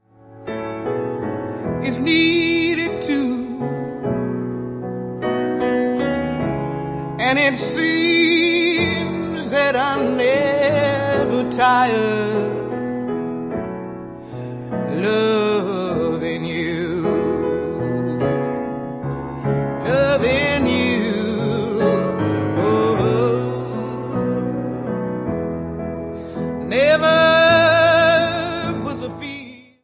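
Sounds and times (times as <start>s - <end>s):
piano: 0.0s - 29.8s.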